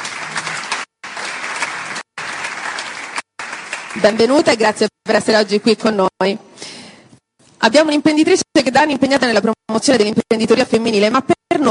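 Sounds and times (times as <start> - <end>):
audience applause: 0.0 - 4.6
speech: 3.9 - 6.5, 7.6 - 11.6.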